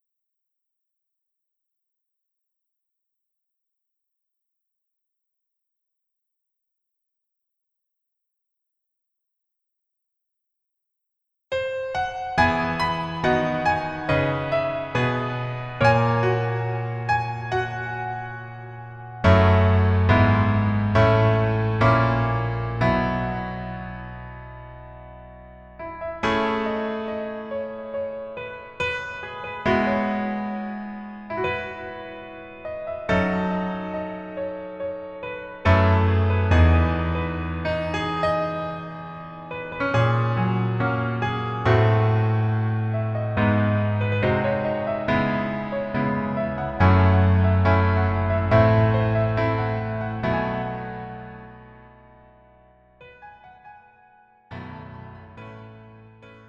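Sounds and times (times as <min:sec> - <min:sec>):
piano version melody backing track: 0:11.5 - 0:56.4.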